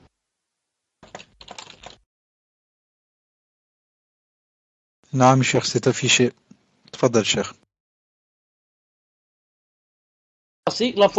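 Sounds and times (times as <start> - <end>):
typing on a computer keyboard: 1.0 - 2.0
speech: 5.1 - 7.6, 10.7 - 11.1.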